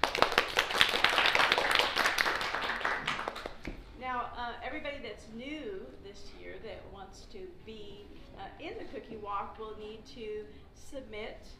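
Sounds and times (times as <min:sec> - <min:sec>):
audience applauding: 0:00.0 - 0:03.7
speech: 0:05.2 - 0:11.5.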